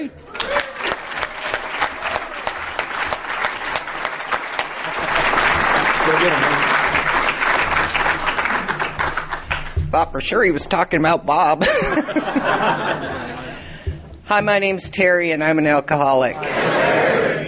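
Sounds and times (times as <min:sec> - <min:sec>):
audience applause: 0:00.2 - 0:09.8
laughter: 0:04.6 - 0:07.1, 0:11.6 - 0:14.0, 0:16.4 - 0:17.4
speech: 0:10.0 - 0:13.4, 0:14.3 - 0:16.6.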